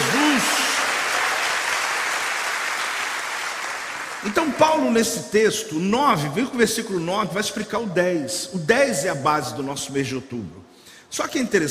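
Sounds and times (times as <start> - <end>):
audience applause: 0.0 - 4.5
speech: 4.2 - 11.6.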